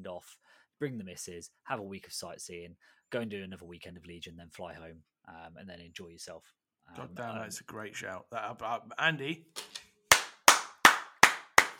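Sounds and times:
speech: 0:00.0 - 0:09.9
hand clapping: 0:09.6 - 0:11.7.

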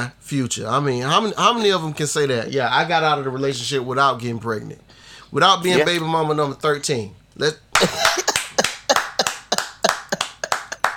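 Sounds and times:
speech: 0:00.0 - 0:08.2
round of applause: 0:07.8 - 0:10.9.

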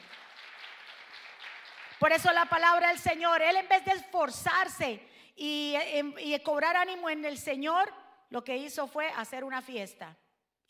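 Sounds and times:
crowd applause: 0:00.0 - 0:02.0
speech: 0:02.0 - 0:10.6.

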